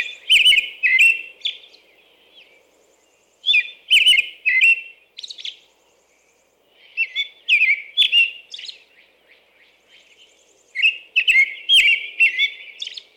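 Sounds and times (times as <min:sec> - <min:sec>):
American robin singing: 0:00.0 - 0:13.1.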